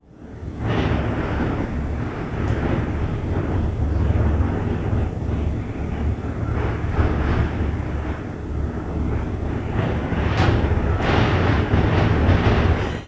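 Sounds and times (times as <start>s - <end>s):
wind: 0.0s - 13.0s.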